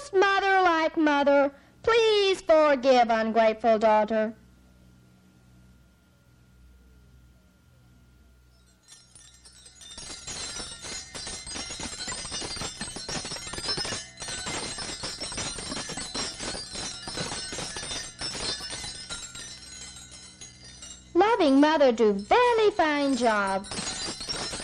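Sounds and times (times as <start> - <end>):
speech: 0.9 - 4.4, 21.4 - 23.8
wind chimes tinkling: 8.5 - 24.6.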